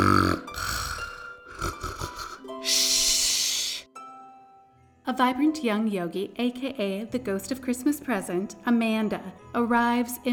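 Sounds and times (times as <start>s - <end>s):
woman snoring loudly: 0.0s - 3.8s
speech: 5.1s - 10.3s.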